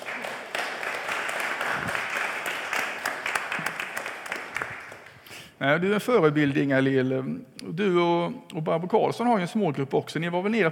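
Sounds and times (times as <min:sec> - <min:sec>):
applause: 0:00.0 - 0:05.2
speech: 0:05.6 - 0:10.7.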